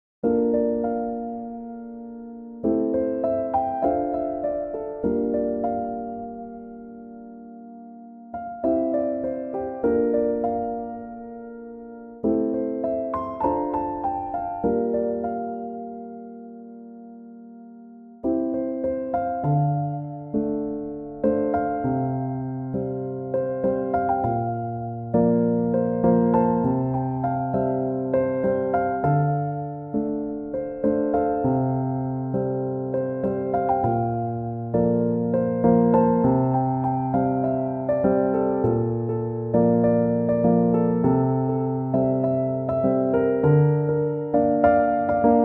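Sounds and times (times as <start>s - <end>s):
chill piano instrumental: 0.2s - 45.4s.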